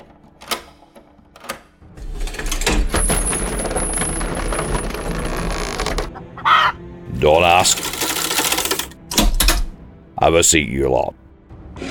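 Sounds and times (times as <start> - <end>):
door being unlocked with clicks, grinding mechanism and whine: 0.0 - 6.2, 7.7 - 9.8
speech: 7.2 - 8.0, 10.2 - 11.2.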